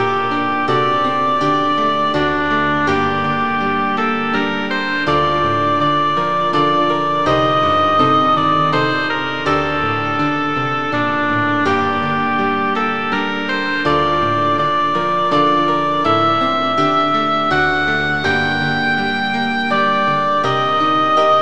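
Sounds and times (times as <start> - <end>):
oboe playing: 0.0 - 21.3.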